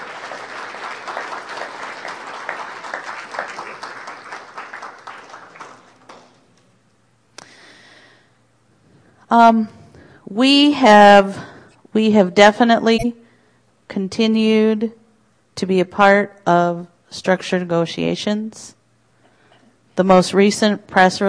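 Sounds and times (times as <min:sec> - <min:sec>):
audience applause: 0:00.0 - 0:06.6
speech: 0:09.3 - 0:13.2, 0:13.9 - 0:15.0, 0:15.6 - 0:18.8, 0:20.0 - 0:21.2.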